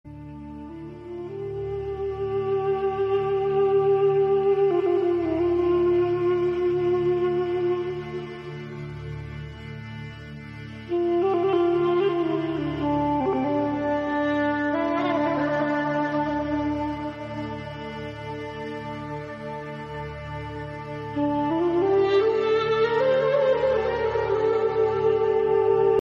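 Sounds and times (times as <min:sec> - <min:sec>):
flute: 0:00.0 - 0:25.9.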